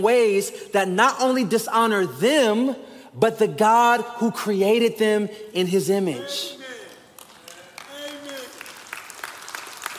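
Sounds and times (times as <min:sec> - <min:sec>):
speech: 0:00.0 - 0:06.7
audience clapping: 0:06.7 - 0:09.9.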